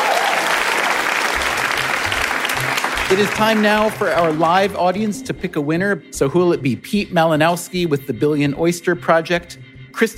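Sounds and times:
audience applause for guests at a live show: 0.0 - 4.8
speech: 3.1 - 10.1.

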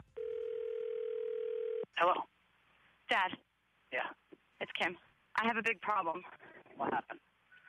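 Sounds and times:
steady telephone tone: 0.1 - 1.9
speech: 4.8 - 7.2.

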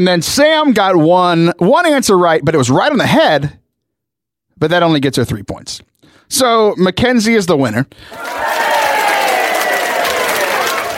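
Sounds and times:
speech: 0.0 - 3.6, 4.6 - 8.7
people cheering for the game winner: 8.1 - 10.9.

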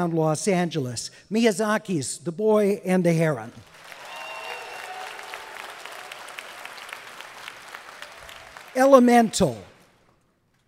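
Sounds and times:
speech: 0.0 - 3.8, 8.8 - 9.7
audience applause: 3.7 - 9.9.

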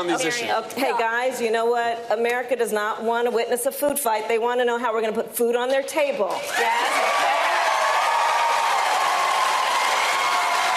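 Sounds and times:
speech: 0.0 - 7.3
crowd cheering wildly: 6.4 - 10.7.

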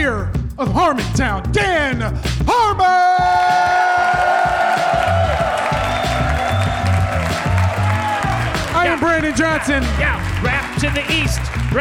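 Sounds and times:
speech: 0.0 - 3.6, 8.8 - 11.6
audience clapping and cheering: 3.0 - 11.7.

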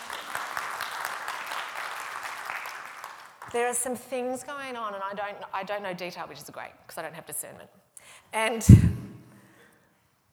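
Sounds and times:
round of applause: 0.0 - 3.8
speech: 3.5 - 9.1.

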